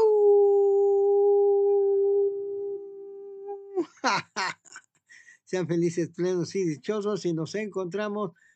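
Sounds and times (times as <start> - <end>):
person imitating a wolf howl: 0.0 - 3.9
speech: 3.8 - 4.6, 5.5 - 8.5.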